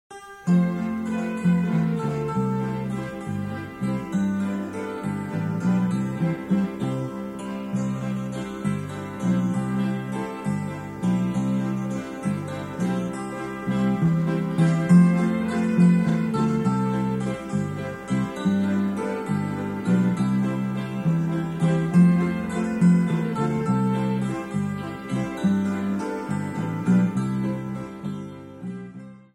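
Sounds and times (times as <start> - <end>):
waltz: 0.2 - 29.3.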